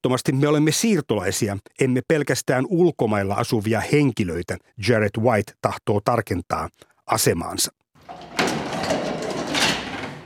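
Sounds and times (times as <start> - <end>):
speech: 0.0 - 8.4
elevator door slammed shut in a Lisbon apartment building: 8.0 - 10.2.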